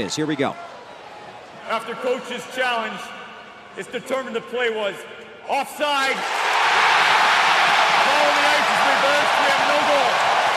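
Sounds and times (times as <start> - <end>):
speech: 0.0 - 0.8, 1.7 - 3.2, 3.8 - 6.4
packed hockey arena crowd roaring: 6.2 - 10.5.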